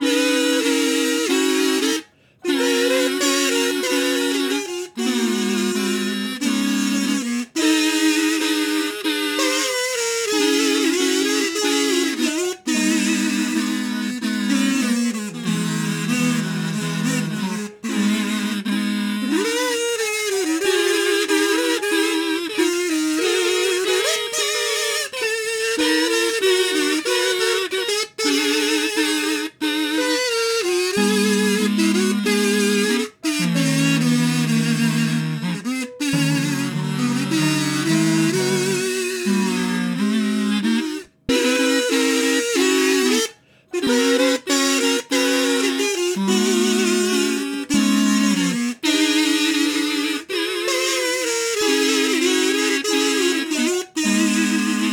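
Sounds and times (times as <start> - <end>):
kazoo: 0.0 - 54.9.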